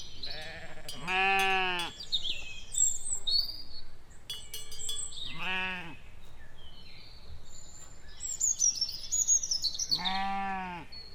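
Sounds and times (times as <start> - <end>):
sheep bleating: 0.3 - 1.9, 5.3 - 6.0, 9.9 - 10.9.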